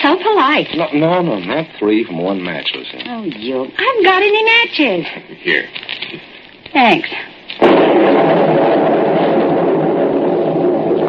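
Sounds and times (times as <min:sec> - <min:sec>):
speech: 0:00.1 - 0:09.0
thunder crack and rumble: 0:07.6 - 0:11.0.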